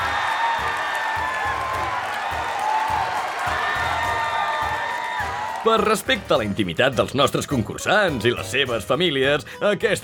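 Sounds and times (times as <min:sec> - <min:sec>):
crowd applauding: 0:00.0 - 0:06.4
speech: 0:05.6 - 0:10.0.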